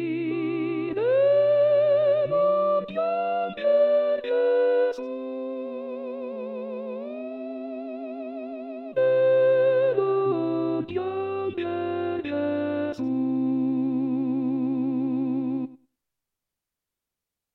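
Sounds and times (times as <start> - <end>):
sopranos singing: 0.0 - 7.2, 9.0 - 15.8.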